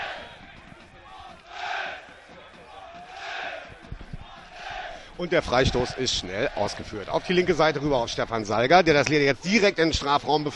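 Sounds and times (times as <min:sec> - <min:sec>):
football fans chanting in the stadium: 0:00.0 - 0:08.1
speech: 0:05.2 - 0:10.5.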